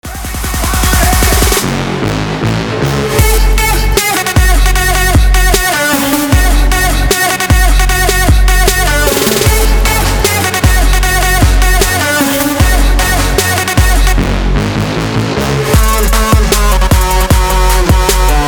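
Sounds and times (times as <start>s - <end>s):
dancehall music: 0.0s - 18.4s.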